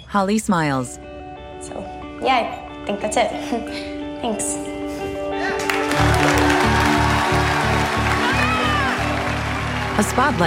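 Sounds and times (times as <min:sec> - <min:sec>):
speech: 0:00.1 - 0:04.7, 0:10.0 - 0:10.4
protesters and guests clapping: 0:05.5 - 0:10.4.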